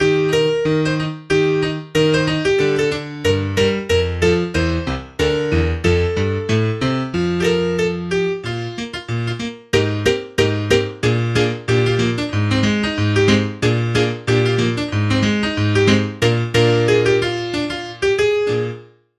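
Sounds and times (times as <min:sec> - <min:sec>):
piano intro: 0:00.0 - 0:19.1.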